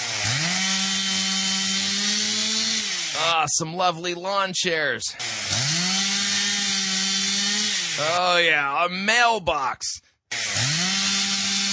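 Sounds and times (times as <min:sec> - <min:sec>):
power saw cutting wood for firewood: 0:00.0 - 0:03.7, 0:05.1 - 0:08.6, 0:10.3 - 0:11.7
speech: 0:03.4 - 0:05.8, 0:08.0 - 0:10.8.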